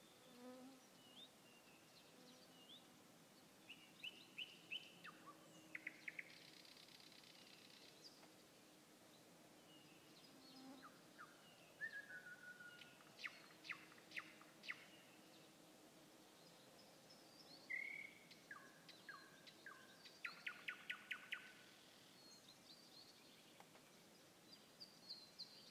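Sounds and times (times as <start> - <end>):
nightingale song: 3.7 - 8.2, 9.7 - 15.2, 16.4 - 25.6.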